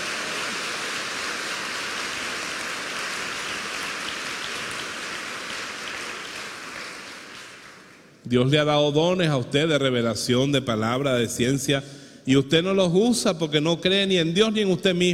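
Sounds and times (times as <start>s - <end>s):
audience applause: 0.0s - 8.2s
speech: 8.3s - 15.1s.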